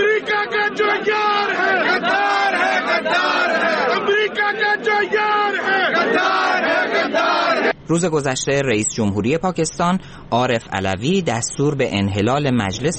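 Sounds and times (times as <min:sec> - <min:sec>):
large crowd of protesters chanting slogans: 0:00.0 - 0:07.8
speech: 0:07.9 - 0:12.9.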